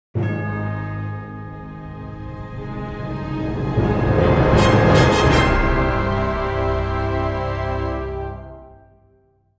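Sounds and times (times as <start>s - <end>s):
victory jingle: 0.2s - 7.5s.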